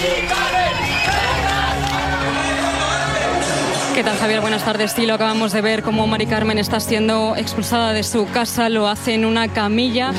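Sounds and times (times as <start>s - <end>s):
crowd cheering: 0.0s - 5.8s
crowd chattering and shouting: 0.0s - 10.1s
speech: 4.0s - 10.1s.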